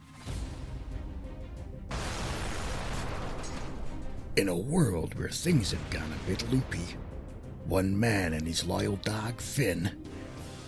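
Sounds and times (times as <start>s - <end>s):
dramatic music: 0.0s - 10.6s
explosion sound effects: 1.9s - 7.4s
speech: 4.4s - 10.2s.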